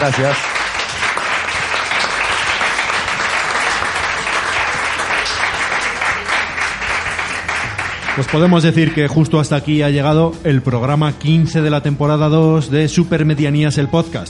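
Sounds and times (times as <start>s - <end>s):
speech: 0.0s - 0.6s, 8.2s - 14.2s
audience applause: 0.0s - 9.0s.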